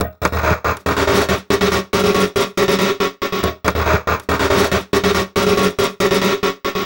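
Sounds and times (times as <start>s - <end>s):
envelope beat: 0.0s - 6.8s.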